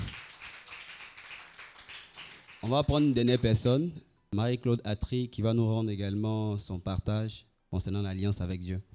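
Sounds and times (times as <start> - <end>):
audience applauding: 0.0 - 3.4
speech: 2.6 - 8.9.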